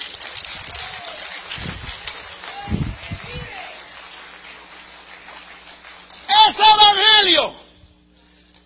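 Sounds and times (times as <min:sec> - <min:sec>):
loud audience applause: 0:00.0 - 0:06.5
speech: 0:07.2 - 0:07.6.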